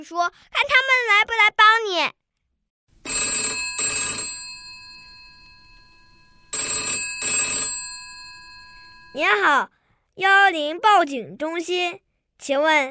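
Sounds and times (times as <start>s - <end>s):
speech: 0.0s - 2.2s, 9.2s - 12.8s
telephone ringing: 3.0s - 9.4s.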